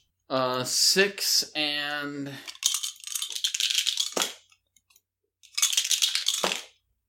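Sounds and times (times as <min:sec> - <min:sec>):
people talking: 0:00.3 - 0:02.4
dice rolled for damage in a tabletop game: 0:02.4 - 0:04.6, 0:05.4 - 0:06.8.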